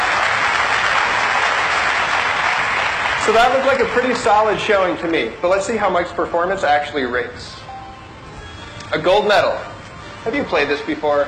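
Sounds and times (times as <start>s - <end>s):
crowd cheering: 0.0s - 4.6s
speech: 3.3s - 7.6s, 8.9s - 11.2s.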